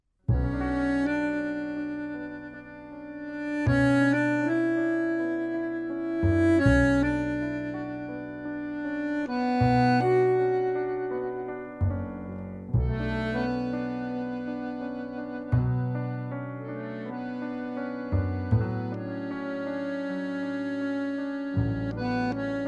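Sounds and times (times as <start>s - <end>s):
trio in B minor: 0.3s - 22.6s.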